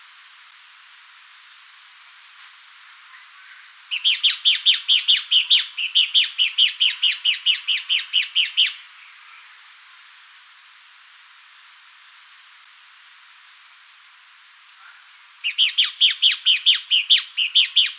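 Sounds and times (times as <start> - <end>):
Fuscous Flycatcher (Cnemotriccus fuscatus) calling: 3.4 - 9.6, 14.8 - 17.9.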